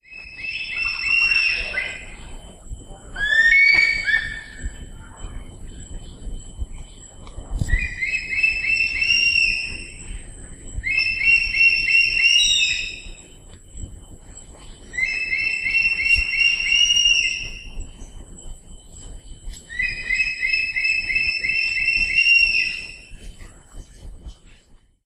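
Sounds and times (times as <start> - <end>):
crested hawk-eagle calls: 0.0 - 2.3, 3.1 - 4.9, 7.7 - 13.2, 14.9 - 17.7, 19.7 - 23.2
low rumble: 0.0 - 24.8.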